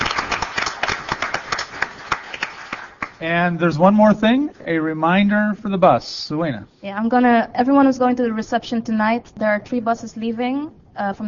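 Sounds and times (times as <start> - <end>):
audience applause: 0.0 - 3.2
speech: 3.2 - 11.2.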